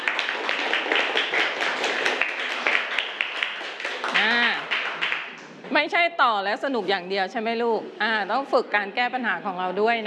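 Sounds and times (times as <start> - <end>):
children clapping: 0.0 - 5.6
speech: 5.8 - 10.0.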